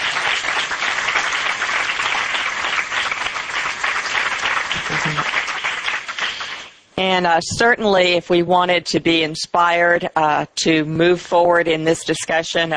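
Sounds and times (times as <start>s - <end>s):
audience applause: 0.0s - 6.8s
speech: 7.0s - 12.7s.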